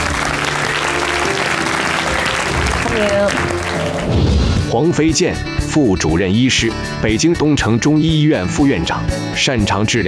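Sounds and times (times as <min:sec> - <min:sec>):
studio audience applause welcoming a guest on a health talk show: 0:00.0 - 0:04.6
speech: 0:04.7 - 0:10.0.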